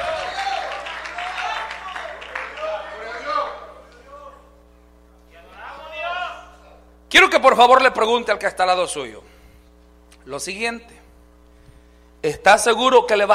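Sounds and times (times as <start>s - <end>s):
audience clapping and cheering: 0.0s - 4.2s
low steady hum: 0.0s - 13.3s
speech: 7.1s - 9.3s, 10.3s - 11.0s, 12.2s - 13.3s.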